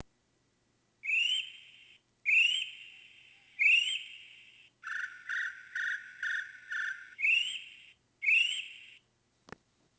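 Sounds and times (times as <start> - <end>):
kiwi call: 1.0 - 9.0.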